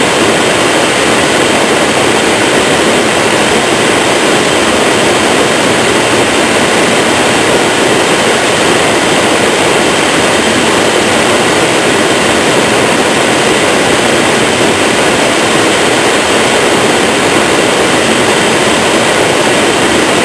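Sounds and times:
TV static: 0.0s - 20.2s.

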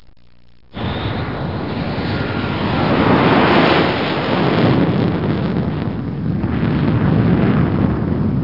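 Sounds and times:
jet aircraft: 0.8s - 8.4s.

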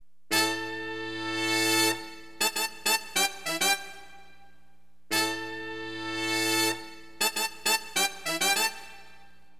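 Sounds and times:
funk horn wind instrument: 0.3s - 4.4s, 5.1s - 9.4s.

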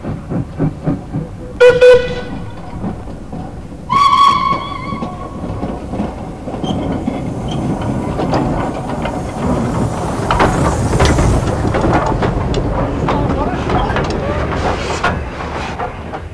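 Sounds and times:
steam train: 0.0s - 16.3s.

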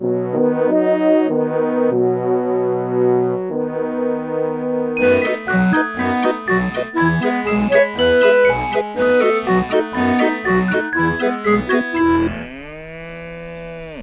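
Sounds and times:
German music: 0.0s - 12.4s.

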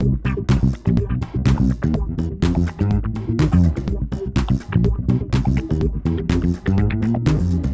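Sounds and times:
acid funk intro music: 0.0s - 7.7s.

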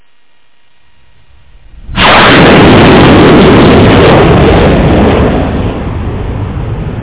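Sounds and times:
jet aircraft: 1.4s - 7.0s.

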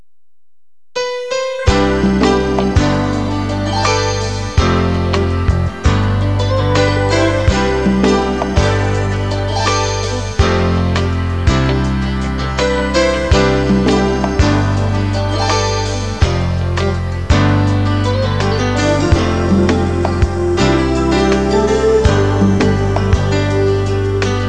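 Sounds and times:
music: 1.0s - 24.4s.

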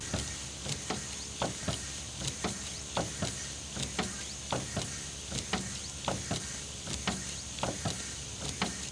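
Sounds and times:
bus windscreen wiper: 0.0s - 8.8s
buses: 0.0s - 8.8s.

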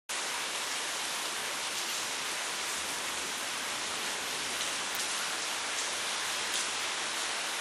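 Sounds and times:
rain: 0.1s - 7.5s.

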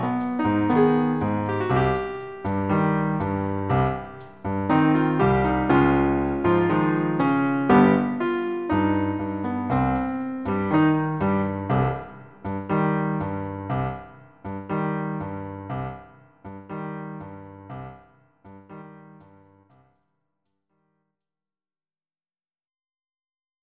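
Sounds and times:
tango music: 0.0s - 14.0s.

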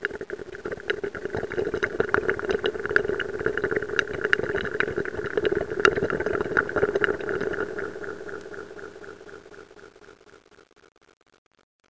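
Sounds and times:
water draining: 0.0s - 9.4s.

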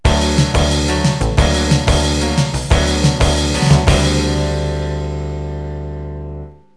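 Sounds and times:
mod beat music: 0.1s - 4.6s.

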